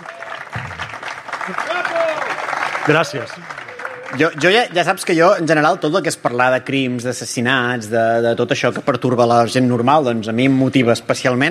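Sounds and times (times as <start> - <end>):
studio audience applause: 0.0 - 6.0
speech: 1.5 - 11.4.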